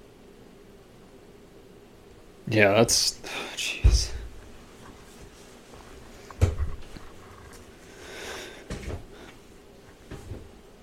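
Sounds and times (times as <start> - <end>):
speech: 2.5 - 4.1
chair that does not roll smoothly being moved: 3.9 - 4.6, 6.3 - 7.5.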